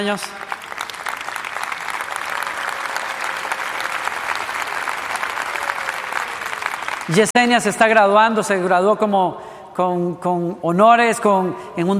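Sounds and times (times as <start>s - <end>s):
speech: 0.0s - 0.5s, 7.1s - 11.9s
audience applause: 0.0s - 7.3s.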